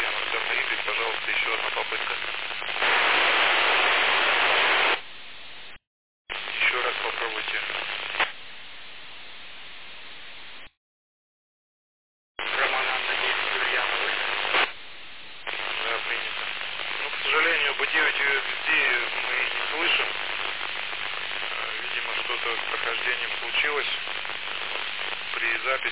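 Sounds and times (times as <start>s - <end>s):
hissing static noise through a radio repeater: 0.0s - 5.0s, 6.3s - 8.4s, 12.4s - 14.8s, 15.4s - 25.9s.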